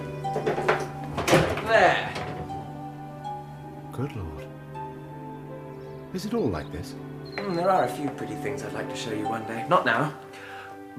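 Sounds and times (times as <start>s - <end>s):
wooden shutter being opened: 0.0s - 3.0s
speech: 4.0s - 4.6s, 6.1s - 10.4s.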